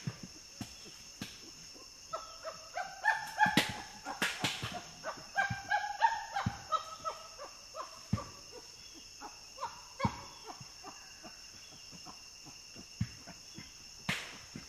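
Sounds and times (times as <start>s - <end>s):
common chimpanzee screams: 2.1s - 11.0s.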